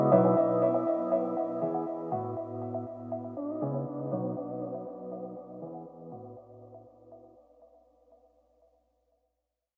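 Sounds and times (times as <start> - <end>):
fashion deep house music: 0.0 - 6.9.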